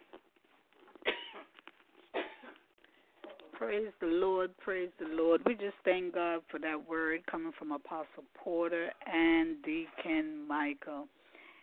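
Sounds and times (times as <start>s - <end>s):
person coughing in a coughing fit: 1.0s - 2.6s
speech: 3.6s - 11.2s.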